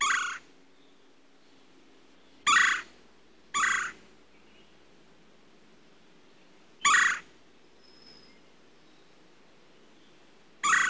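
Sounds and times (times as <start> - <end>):
red-bellied woodpecker giving churr calls: 0.0 - 0.5, 2.4 - 2.9, 3.5 - 4.0, 6.8 - 7.3, 10.6 - 10.8.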